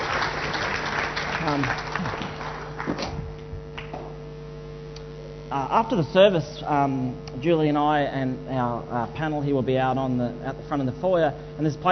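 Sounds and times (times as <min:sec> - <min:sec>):
audience clapping: 0:00.0 - 0:04.2
low hum: 0:00.0 - 0:11.8
speech: 0:01.5 - 0:02.0, 0:05.5 - 0:11.8.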